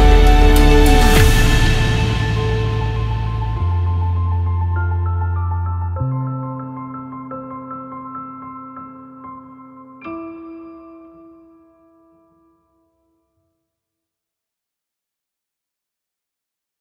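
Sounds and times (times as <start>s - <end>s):
epic background music for videos and trailers: 0.0s - 5.1s.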